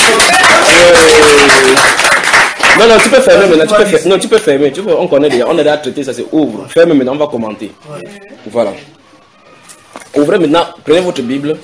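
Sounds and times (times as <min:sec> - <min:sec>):
congregation clapping during a French-language church teaching session: 0:00.0 - 0:03.4
speech: 0:02.8 - 0:09.0, 0:10.1 - 0:11.6.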